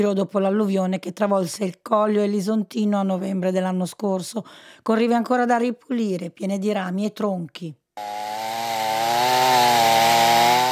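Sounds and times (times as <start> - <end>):
speech: 0.0 - 8.4
chainsaw cutting wood: 8.0 - 10.7.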